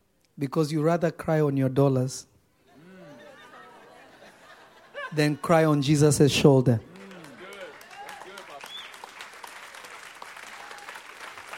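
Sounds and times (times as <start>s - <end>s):
speech: 0.4s - 2.3s, 5.1s - 6.9s
laughter: 2.7s - 6.0s, 6.8s - 8.6s
audience clapping: 6.8s - 11.5s.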